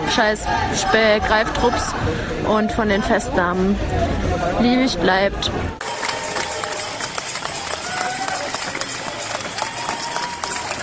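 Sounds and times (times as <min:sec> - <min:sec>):
speech: 0:00.2 - 0:05.8
street crowd applause: 0:05.8 - 0:10.8.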